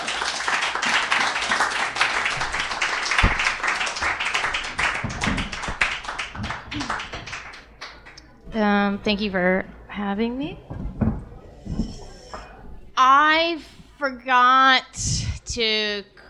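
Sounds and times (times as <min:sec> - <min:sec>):
audience applause: 0:00.0 - 0:08.2
faint murmurs: 0:06.4 - 0:13.0
speech: 0:08.6 - 0:10.8, 0:13.0 - 0:16.1.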